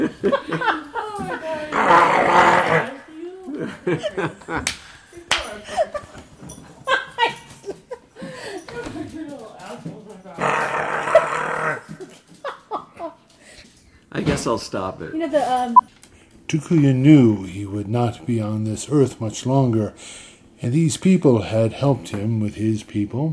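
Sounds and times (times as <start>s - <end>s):
laughter: 0.0s - 1.7s, 3.4s - 9.2s, 12.0s - 13.3s
speech: 0.2s - 0.5s, 3.9s - 4.9s, 14.4s - 15.8s, 16.5s - 23.3s
dog growling and snarling: 1.7s - 3.1s, 10.4s - 12.1s.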